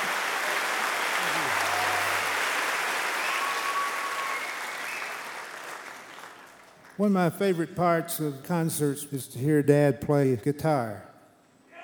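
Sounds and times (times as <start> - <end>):
audience applause: 0.0 - 7.0
speech: 7.0 - 11.1.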